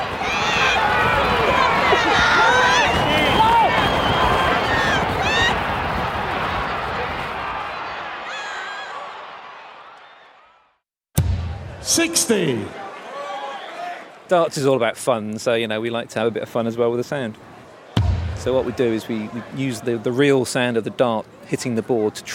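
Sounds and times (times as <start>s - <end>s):
horse racing crowd cheering and yelling: 0.0s - 14.3s, 17.5s - 20.3s
speech: 12.3s - 12.8s, 14.3s - 17.5s, 18.4s - 22.3s.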